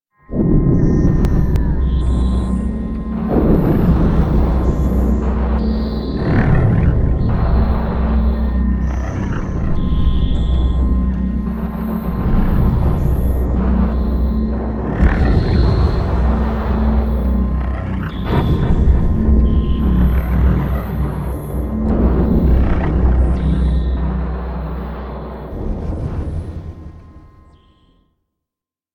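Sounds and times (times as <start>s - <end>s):
background machinery: 0.4s - 27.9s.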